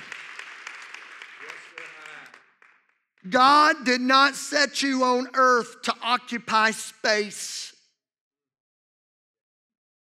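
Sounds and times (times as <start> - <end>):
audience clapping hands: 0.0 - 3.8
speech: 3.2 - 7.6.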